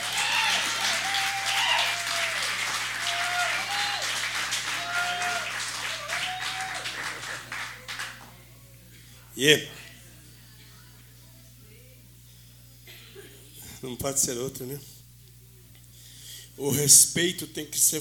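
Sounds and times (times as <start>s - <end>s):
audience applause: 0.0s - 8.4s
speech: 9.4s - 9.8s, 13.8s - 15.0s, 16.6s - 17.9s.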